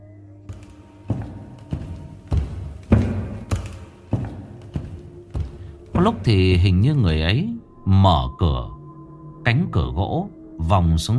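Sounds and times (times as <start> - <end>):
footsteps on wooden stairs at midnight: 0.5 - 6.9
speech: 6.0 - 8.8, 9.5 - 11.1.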